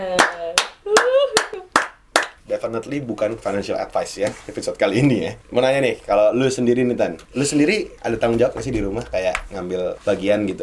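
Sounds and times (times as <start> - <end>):
group hand clapping: 0.0 - 2.4
speech: 2.6 - 10.6.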